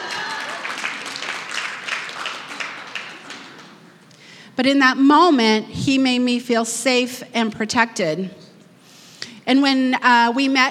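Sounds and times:
audience applause: 0:00.0 - 0:03.9
speech: 0:04.6 - 0:08.4, 0:09.5 - 0:10.6.

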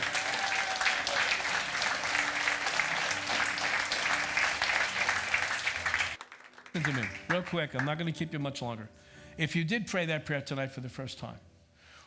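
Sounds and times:
cheering: 0:00.0 - 0:06.2
crowd applause: 0:00.0 - 0:07.9
speech: 0:06.8 - 0:11.5.

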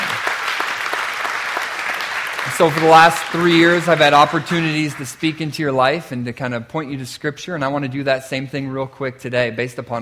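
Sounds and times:
audience applause: 0:00.0 - 0:05.6
speech: 0:02.6 - 0:09.9.

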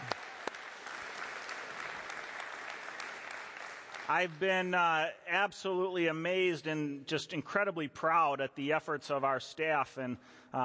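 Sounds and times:
audience applause: 0:00.0 - 0:04.5
speech: 0:04.1 - 0:10.6.

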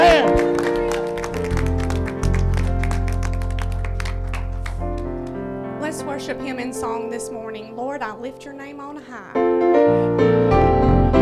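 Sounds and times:
audience clapping hands: 0:00.0 - 0:05.4
speech: 0:06.3 - 0:10.5.

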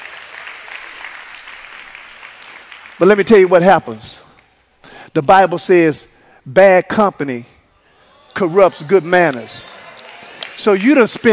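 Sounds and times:
congregation clapping during a sermon: 0:00.0 - 0:04.5, 0:08.8 - 0:11.3
speech: 0:03.0 - 0:04.3, 0:05.2 - 0:07.5, 0:08.4 - 0:09.8, 0:10.6 - 0:11.3.

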